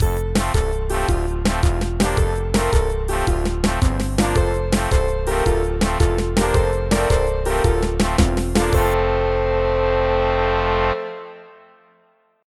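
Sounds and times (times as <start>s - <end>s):
fun level jingle: 0.0s - 11.6s.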